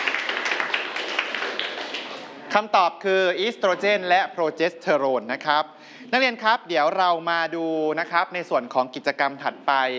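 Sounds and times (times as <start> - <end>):
students clapping for a classmate in a classroom: 0.0 - 2.4
speech: 2.5 - 9.9.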